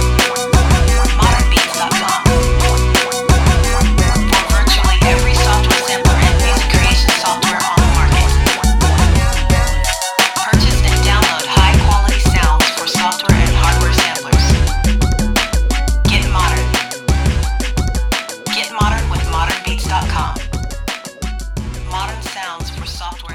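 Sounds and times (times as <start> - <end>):
brass instruments: 0.0 - 20.1.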